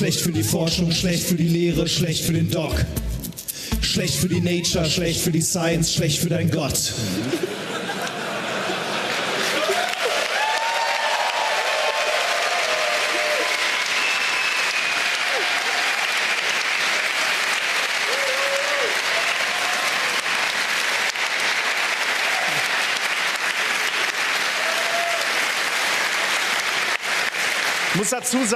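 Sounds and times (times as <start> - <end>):
speech: 0.1 - 3.1, 3.9 - 7.7, 28.1 - 28.5
laughter: 6.9 - 10.3
audience applause: 7.6 - 28.5.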